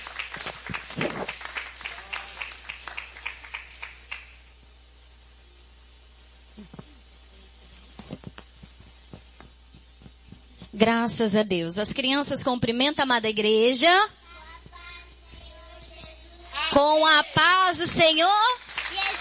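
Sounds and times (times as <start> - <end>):
audience applauding: 0.0 - 4.4, 18.5 - 19.2
speech: 10.8 - 14.2, 16.8 - 18.6.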